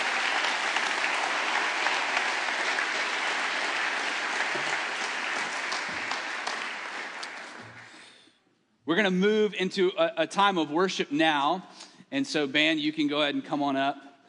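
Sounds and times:
audience applause: 0.0s - 8.2s
speech: 8.9s - 14.1s.

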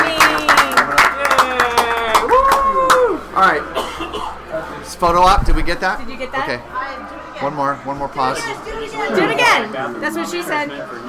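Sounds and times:
applause: 0.0s - 3.2s
speech: 5.0s - 11.0s.

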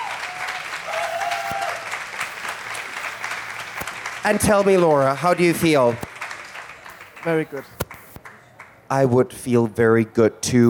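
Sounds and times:
audience applause: 0.0s - 8.8s
speech: 4.2s - 6.1s, 7.2s - 7.8s, 8.9s - 10.6s.

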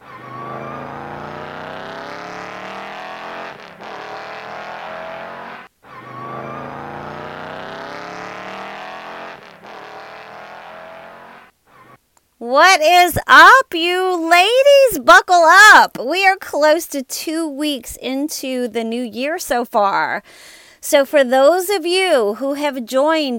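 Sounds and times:
car engine revving as the car drives off: 0.0s - 12.0s
speech: 12.4s - 23.3s.

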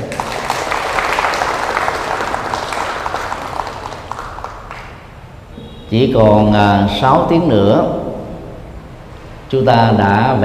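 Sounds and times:
large audience applause: 0.0s - 5.2s
speech: 5.9s - 8.0s, 9.5s - 10.4s.

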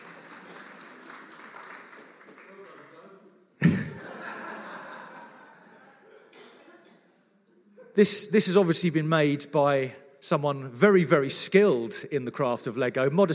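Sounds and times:
round of applause: 0.0s - 4.0s
laughter: 3.6s - 8.3s
speech: 8.0s - 13.3s.

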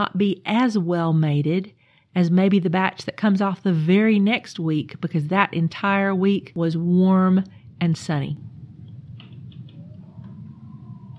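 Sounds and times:
speech: 0.0s - 8.5s
blustery wind gust: 7.4s - 11.1s.

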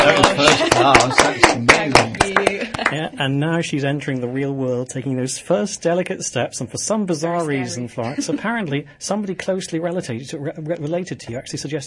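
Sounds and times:
studio applause: 0.0s - 3.1s
laughter: 0.0s - 3.2s, 8.0s - 8.7s
speech: 3.2s - 11.8s.

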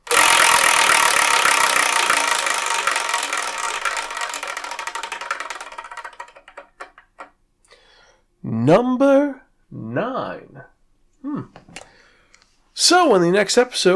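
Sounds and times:
selection wheel spinning and clicking: 0.0s - 7.4s
speech: 8.5s - 10.6s, 12.8s - 13.9s.

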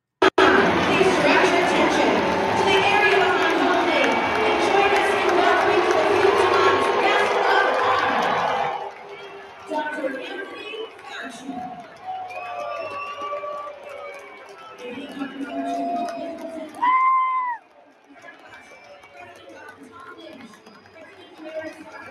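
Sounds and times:
baseball stadium crowd booing: 0.2s - 17.6s.

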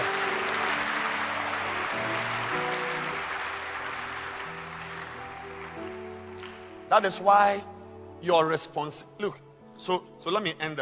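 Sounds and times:
church congregation clapping during a service: 0.0s - 7.4s
speech: 6.9s - 10.8s.

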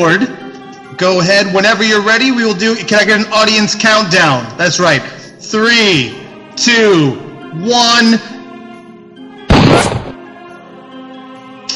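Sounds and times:
speech: 0.0s - 0.4s, 1.0s - 8.3s
sustained musical backing: 0.0s - 11.7s
gunshot in a stage bullet-catch magic stunt: 9.5s - 10.2s.

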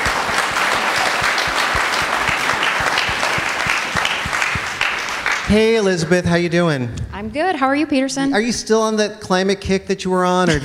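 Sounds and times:
audience applause: 0.0s - 6.2s
speech: 5.5s - 10.6s.

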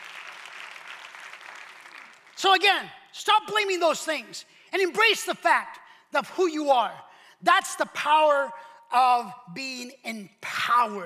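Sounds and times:
audience clapping: 0.0s - 2.7s
speech: 2.4s - 11.0s.

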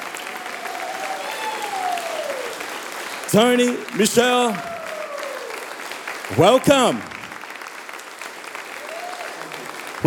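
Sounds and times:
audience applause for guest pastors at a church service: 0.0s - 10.0s
whistle-like cheer: 0.3s - 2.6s, 4.1s - 5.7s
speech: 3.3s - 4.7s, 6.3s - 7.1s.

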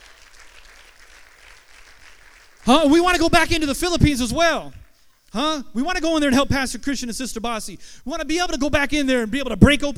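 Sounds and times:
audience applause: 0.0s - 3.1s
speech: 2.7s - 9.9s.

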